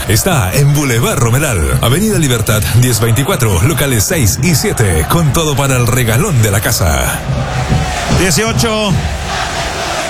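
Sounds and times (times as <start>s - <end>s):
stadium crowd shouting and chanting: 0.0s - 10.0s
speech: 0.1s - 9.6s.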